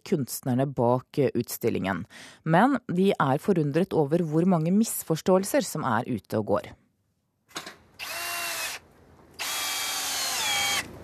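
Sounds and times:
speech: 0.1 - 6.8
power screwdriver driving screws to build a replica Congo village: 8.0 - 8.8, 9.4 - 11.0.

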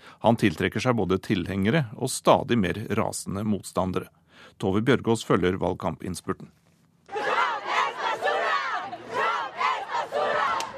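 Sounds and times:
speech: 0.2 - 6.6
demonstrators chanting at a rally: 7.1 - 10.7.

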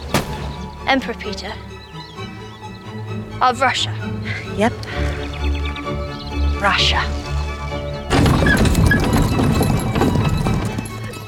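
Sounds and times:
classical music: 0.0 - 11.2
speech: 0.9 - 1.7, 3.4 - 5.2, 6.6 - 7.3
horse-drawn carriage hooves clip-clopping: 8.1 - 11.2.

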